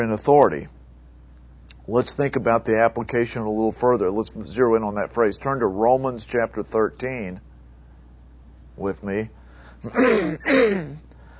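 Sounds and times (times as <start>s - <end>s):
speech: 0.0s - 0.8s, 1.9s - 7.5s, 8.8s - 11.0s
person clearing throat during a sermon: 9.8s - 11.1s.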